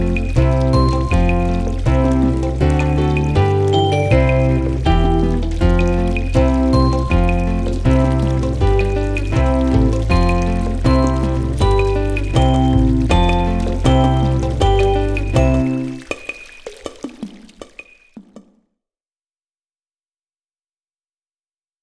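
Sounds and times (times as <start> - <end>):
instrumental music: 0.0 - 16.3.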